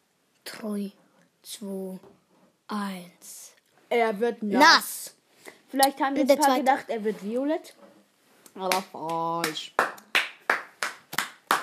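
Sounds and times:
speech: 0.6 - 7.8, 8.6 - 9.8
lone clapper's sharp bright hand claps: 8.7 - 11.6.

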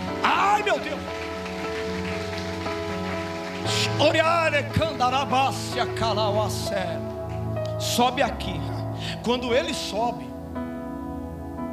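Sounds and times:
audience clapping: 0.0 - 6.7
speech: 3.6 - 7.1, 7.8 - 10.3.

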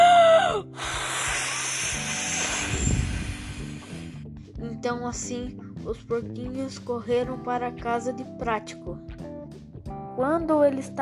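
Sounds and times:
voice imitating the big bad wolf blowing the house down: 0.4 - 4.2
speech: 4.8 - 9.1, 10.2 - 11.0.

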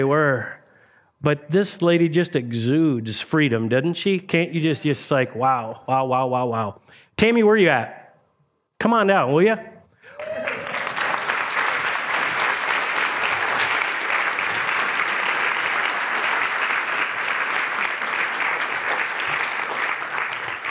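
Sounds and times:
speech: 0.0 - 0.6, 1.2 - 8.0, 8.8 - 10.5
audience applause welcoming a woman guest onto a stage: 10.1 - 20.6.

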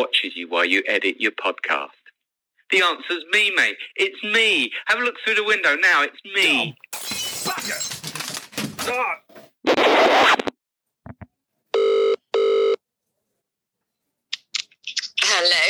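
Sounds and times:
speech: 0.0 - 2.0, 2.7 - 8.0, 8.8 - 10.5, 15.3 - 15.6
telephone ringing: 11.8 - 12.8.

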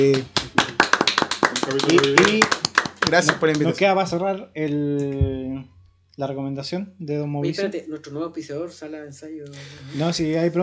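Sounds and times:
speech: 0.0 - 0.4, 1.6 - 10.6
applause: 0.0 - 3.8.

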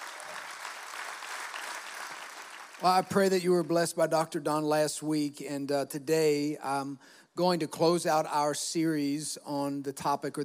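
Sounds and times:
audience clapping: 0.0 - 3.8
speech: 2.8 - 10.4.

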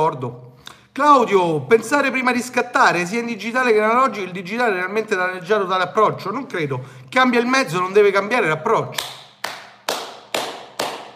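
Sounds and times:
speech: 0.1 - 9.2
hand claps: 8.9 - 11.1.

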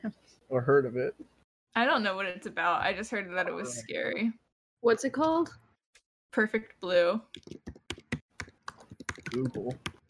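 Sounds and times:
speech: 0.0 - 5.6, 6.3 - 7.8, 9.3 - 9.9
typing on a computer keyboard: 7.3 - 10.0.

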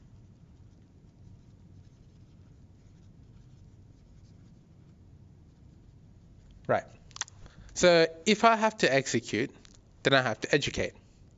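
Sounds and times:
pen or pencil scratching on paper while writing: 0.0 - 4.9
speech: 6.7 - 7.0, 7.8 - 11.0.

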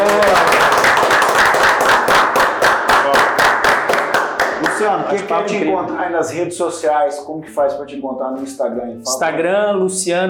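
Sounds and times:
round of applause: 0.0 - 5.2
speech: 5.1 - 10.2.

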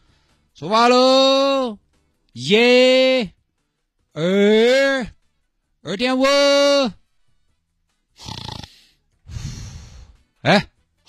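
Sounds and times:
speech: 0.6 - 1.8, 2.4 - 3.4, 4.2 - 5.1, 5.9 - 7.0, 10.4 - 11.0
snoring: 8.2 - 10.1.

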